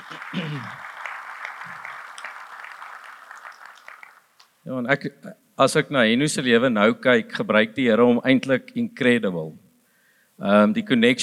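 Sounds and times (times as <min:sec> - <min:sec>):
audience applause: 0:00.0 - 0:04.3
speech: 0:00.3 - 0:00.8, 0:04.7 - 0:09.6, 0:10.4 - 0:11.2.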